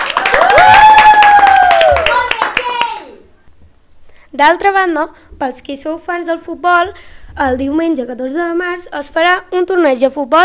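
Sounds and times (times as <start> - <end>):
audience applause: 0.0 - 3.1
speech: 4.4 - 10.4.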